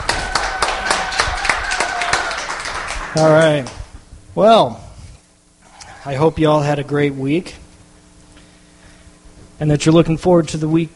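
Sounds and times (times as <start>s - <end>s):
crowd cheering: 0.0s - 3.8s
audience clapping: 0.0s - 3.9s
speech: 3.1s - 3.8s, 4.4s - 4.8s, 6.0s - 7.6s, 9.6s - 10.9s.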